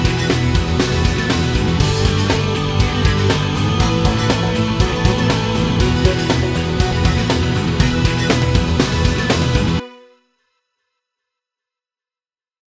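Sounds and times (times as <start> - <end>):
instrumental pop punk music: 0.0 - 9.9.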